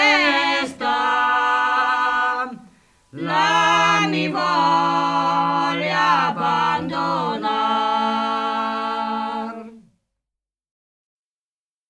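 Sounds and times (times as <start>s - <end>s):
choir singing: 0.0s - 9.9s.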